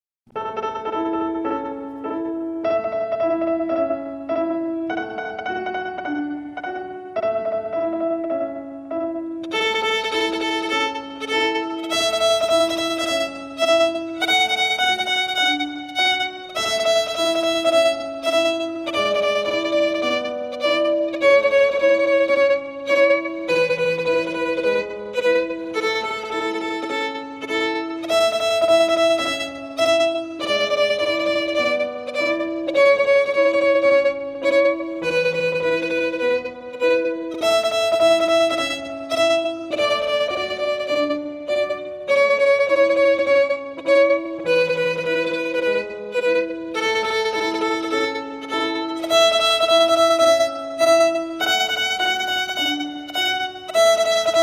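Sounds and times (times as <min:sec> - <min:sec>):
very slow music: 0:00.3 - 0:54.4.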